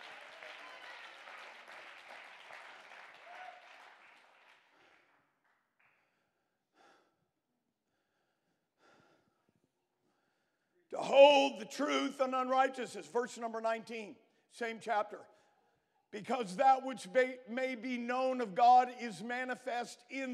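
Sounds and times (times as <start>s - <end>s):
audience clapping hands: 0.0s - 6.0s
speech: 11.0s - 15.3s, 16.1s - 20.3s.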